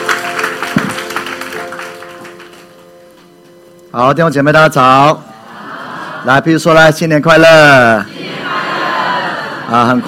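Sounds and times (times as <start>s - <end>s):
audience applause: 0.0s - 2.9s
speech: 3.9s - 5.3s, 6.2s - 8.2s, 9.7s - 10.0s.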